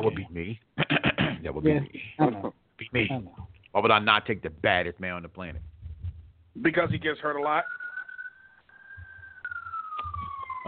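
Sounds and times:
speech: 0.0s - 0.7s, 1.5s - 5.7s, 6.6s - 7.8s
ambulance siren passing in the streets: 7.6s - 10.6s.

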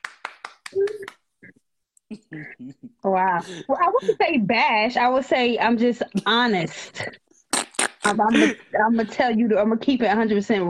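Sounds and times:
hand clapping sound effect: 0.0s - 1.3s
speech: 2.3s - 7.2s, 8.1s - 10.6s.

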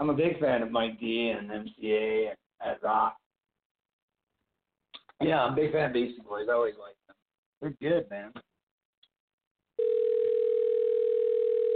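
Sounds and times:
speech: 0.0s - 3.2s, 5.2s - 7.0s, 7.6s - 8.5s
telephone dial tone: 9.8s - 11.7s.

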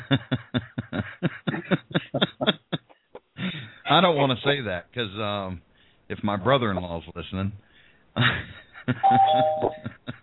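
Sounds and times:
laughter: 0.0s - 4.6s, 8.2s - 10.2s
speech: 0.1s - 1.2s, 3.9s - 10.0s
two-tone doorbell chime: 9.0s - 9.9s.

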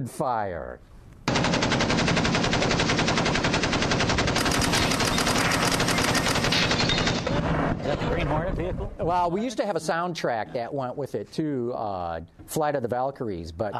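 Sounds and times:
speech: 0.0s - 3.0s, 6.6s - 13.7s
machine-gun sound effect: 1.3s - 7.8s.

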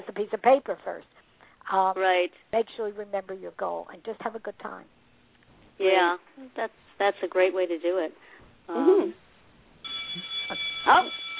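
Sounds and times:
speech: 0.2s - 5.0s, 5.8s - 9.2s, 10.1s - 11.2s
school bell ringing: 9.8s - 11.3s.

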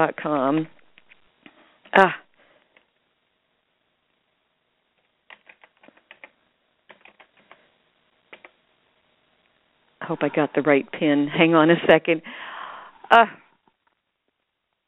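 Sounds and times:
speech: 0.0s - 0.8s, 1.9s - 2.2s, 10.1s - 12.5s, 13.1s - 13.4s
fast keyboard typing to sign in to a website: 5.3s - 7.6s, 8.3s - 8.6s.

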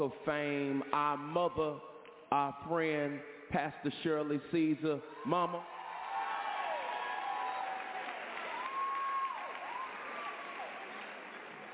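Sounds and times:
speech: 0.0s - 5.8s
audience cheering: 5.4s - 11.7s
audience clapping: 6.1s - 11.7s.

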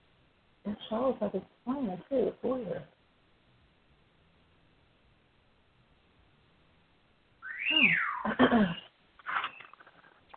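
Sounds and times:
speech: 0.7s - 3.0s
bird whistling: 7.4s - 9.8s.

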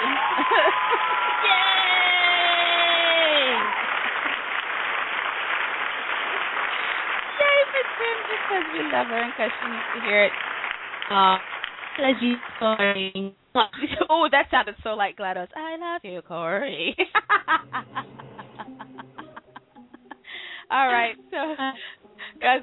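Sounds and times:
voices cheering and shouting: 0.0s - 3.8s
person whooping: 0.0s - 3.9s
laughter: 0.0s - 4.6s, 17.0s - 22.6s
applause: 0.0s - 13.2s
speech: 9.0s - 10.5s, 11.1s - 18.3s, 20.7s - 22.6s.

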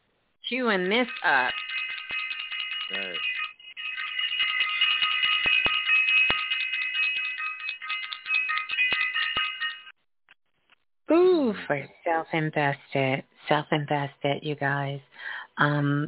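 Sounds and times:
speech: 0.5s - 1.6s, 11.7s - 16.0s
electronic bell ringing: 0.7s - 10.0s.

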